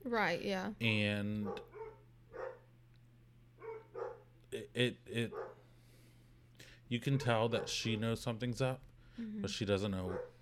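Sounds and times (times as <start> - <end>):
speech: 0.0 - 1.7, 4.5 - 5.5, 6.9 - 10.4
low steady hum: 0.0 - 10.4
dogs barking, probably at a deer: 1.4 - 2.7, 3.6 - 4.4, 5.2 - 5.7, 7.0 - 8.3, 10.0 - 10.4.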